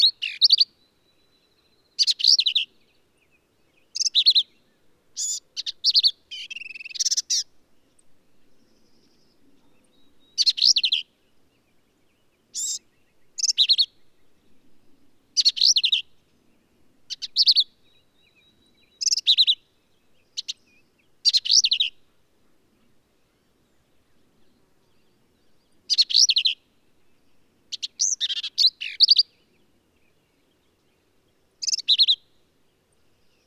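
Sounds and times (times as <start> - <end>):
black-capped vireo chattering song: 0.0 - 1.3, 2.0 - 2.8, 3.8 - 4.6, 5.2 - 7.5, 9.2 - 11.1, 12.5 - 14.0, 15.4 - 16.1, 17.1 - 19.6, 20.3 - 22.0, 25.1 - 26.6, 27.7 - 29.6, 31.6 - 32.3.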